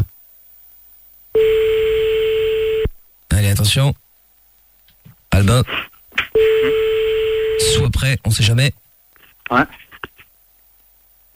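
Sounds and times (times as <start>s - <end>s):
telephone line tone: 1.4s - 2.9s, 6.4s - 7.9s
speech: 3.6s - 4.0s, 5.4s - 6.8s, 7.6s - 8.8s, 9.5s - 9.8s.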